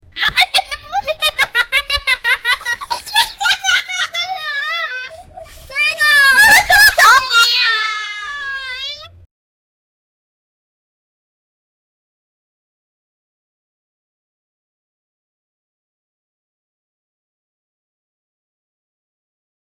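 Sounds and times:
children laughing: 0:00.1 - 0:09.1.

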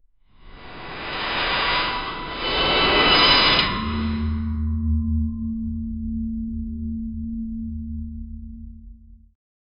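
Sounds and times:
massive ultra heavy ground rumble: 0:00.3 - 0:07.7.

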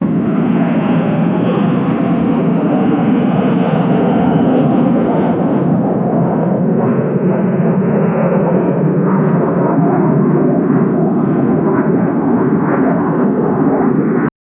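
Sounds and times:
business jet flying: 0:00.0 - 0:14.3.

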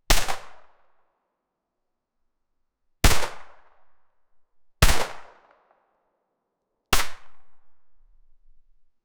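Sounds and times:
Glock 17 pistol: 0:00.1 - 0:00.9, 0:03.0 - 0:03.8, 0:04.8 - 0:05.8, 0:07.0 - 0:07.6.

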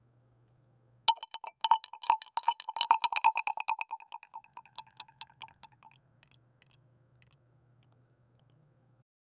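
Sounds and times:
drink sipping: 0:01.1 - 0:05.9
glass chime: 0:01.1 - 0:06.0.

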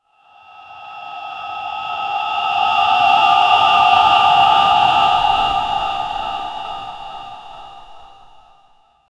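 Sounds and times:
ultra realistic shamanic occult sounds: 0:03.0 - 0:08.8.

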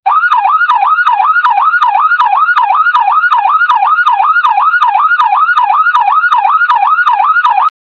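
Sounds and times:
Uzbek music on an Afghan rubab: 0:00.1 - 0:07.7.

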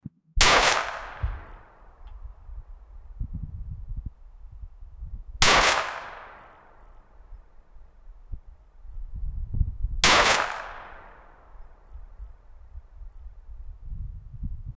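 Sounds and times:
Luger pistol gunshots: 0:00.4 - 0:02.2, 0:05.4 - 0:07.7, 0:10.0 - 0:12.2.

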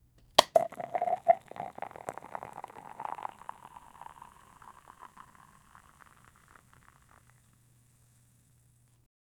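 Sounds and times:
beer bottle: 0:00.3 - 0:08.0.

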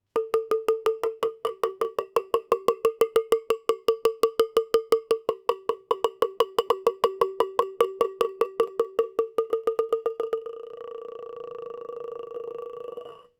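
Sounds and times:
ball bouncing on plate: 0:00.0 - 0:10.4.

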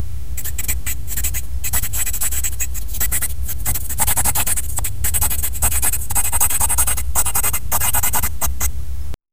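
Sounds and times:
marker writing: 0:00.4 - 0:08.7.

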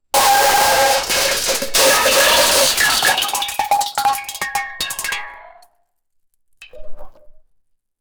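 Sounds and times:
fizzy liquid bursting: 0:00.2 - 0:05.3.

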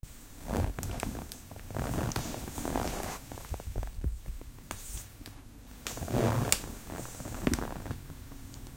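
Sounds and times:
putting on a coat: 0:00.4 - 0:04.0, 0:05.8 - 0:08.3.

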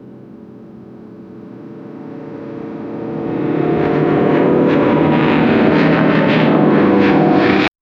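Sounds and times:
aircraft propeller: 0:03.0 - 0:07.7.

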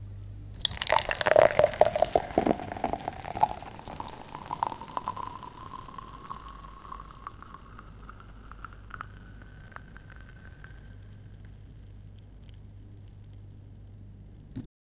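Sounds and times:
pouring traditional Arabic drink: 0:00.6 - 0:14.5.

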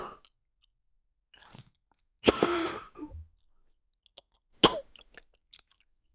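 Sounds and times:
chewing crispy food: 0:01.4 - 0:02.0, 0:04.1 - 0:06.0.

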